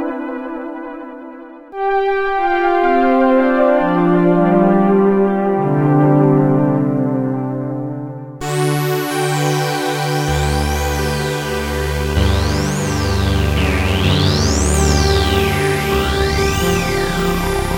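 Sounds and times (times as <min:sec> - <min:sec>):
analog synthesizer pad: 0:00.0 - 0:17.7.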